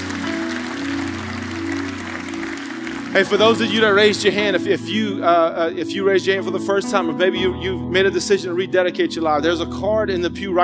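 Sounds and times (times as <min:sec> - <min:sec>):
audience hand clapping: 0:00.0 - 0:04.5
speech: 0:03.2 - 0:10.6.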